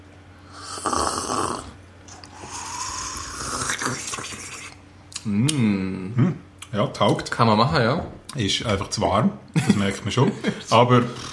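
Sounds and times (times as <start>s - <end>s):
slurping red wine from a glass: 0.7s - 4.8s
speech: 5.2s - 11.3s.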